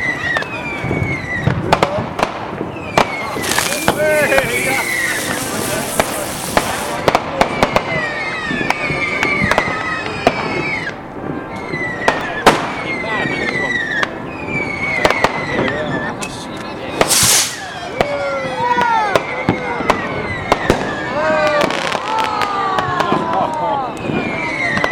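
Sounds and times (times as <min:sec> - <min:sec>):
new year celebration in Geldrop: 0:00.0 - 0:24.9.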